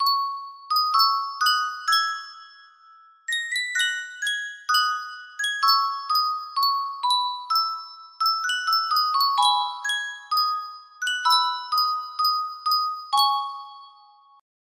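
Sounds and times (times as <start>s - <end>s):
Sankyo custom tune music box: 0.0s - 14.4s.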